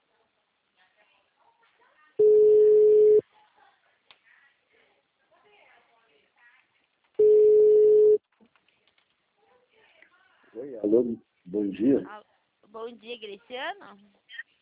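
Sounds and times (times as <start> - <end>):
faint noise: 0.0 - 14.6
telephone ringing tone on a call to a bank: 2.2 - 3.2, 7.2 - 8.2
speech: 10.8 - 14.2.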